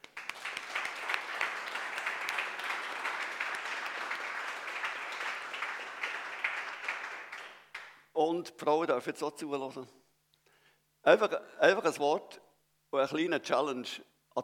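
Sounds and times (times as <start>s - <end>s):
audience applause in a hall: 0.0s - 8.0s
speech: 8.2s - 10.0s, 11.1s - 14.4s.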